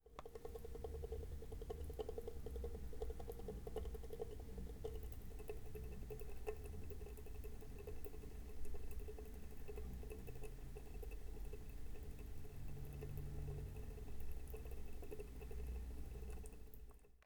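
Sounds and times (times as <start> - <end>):
dripping tap: 0.1 - 17.2.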